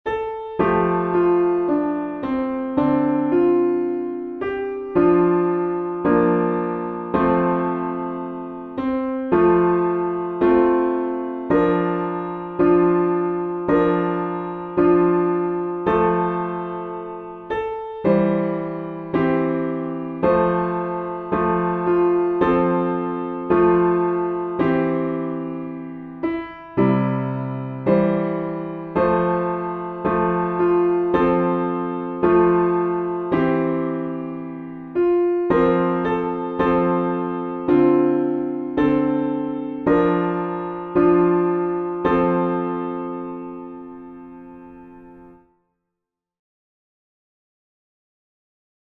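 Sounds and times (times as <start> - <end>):
piano backing: 0.0 - 45.5.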